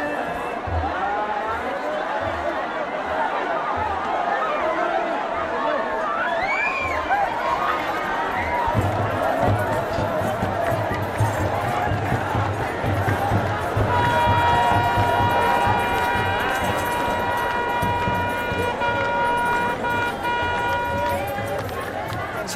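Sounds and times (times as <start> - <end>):
joyful crowd cheering and chattering while sprinkled with blessed water: 0.0 - 22.5
people shouting: 0.0 - 22.5.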